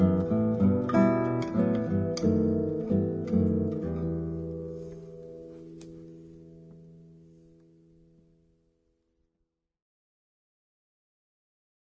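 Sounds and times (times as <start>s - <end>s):
classical guitar: 0.0s - 9.0s.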